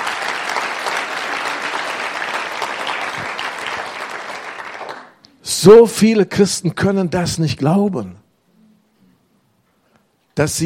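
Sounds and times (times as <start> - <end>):
audience clapping: 0.0 - 5.2
speech: 5.6 - 8.2, 10.4 - 10.6.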